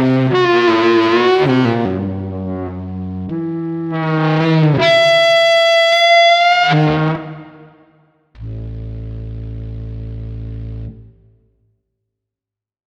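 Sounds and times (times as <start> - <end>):
old saxophone playing free jazz: 0.0 - 7.5.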